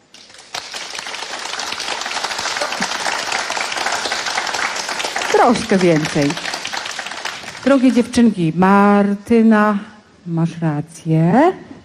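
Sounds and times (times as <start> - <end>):
audience applause at an outdoor water market: 0.0 - 7.8
speech: 5.4 - 6.5, 7.7 - 11.7.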